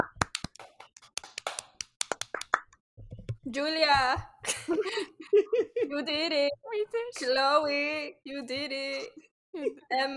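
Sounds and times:
small group applause: 0.0 - 2.7
speech: 3.5 - 10.1
laughter: 4.4 - 6.1.

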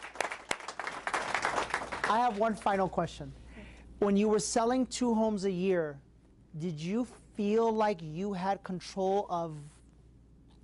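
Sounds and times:
applause: 0.0 - 2.8
speech: 2.1 - 3.4, 4.0 - 9.8.

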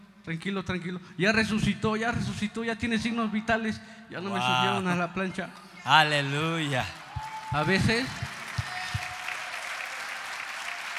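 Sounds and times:
speech: 0.2 - 8.3
laughter: 4.3 - 5.0
audience applause: 6.6 - 10.9.

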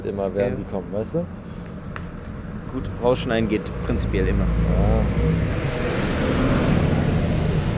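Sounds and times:
speech: 0.1 - 1.8, 2.7 - 6.0
rail replacement bus passing: 1.3 - 7.7.

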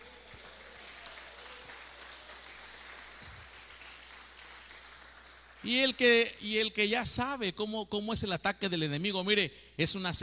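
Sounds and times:
audience clapping hands: 0.0 - 6.3
speech: 5.6 - 10.2.

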